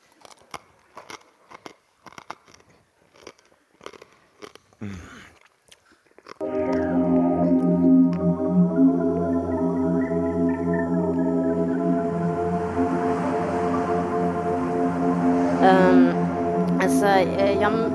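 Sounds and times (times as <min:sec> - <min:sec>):
person chewing and eating a snail: 0:00.0 - 0:06.9
music: 0:06.4 - 0:17.9.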